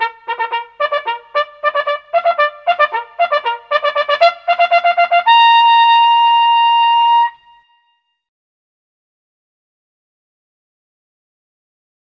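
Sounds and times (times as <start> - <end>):
horn accelerating: 0.0 - 8.0.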